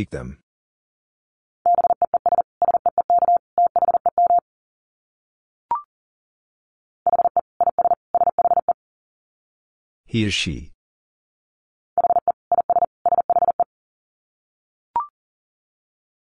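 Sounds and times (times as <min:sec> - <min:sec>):
speech: 0:00.0 - 0:00.4, 0:10.1 - 0:10.7
rapid Morse code tones at 40 words per minute: 0:01.7 - 0:04.4, 0:07.1 - 0:08.8, 0:12.0 - 0:13.7.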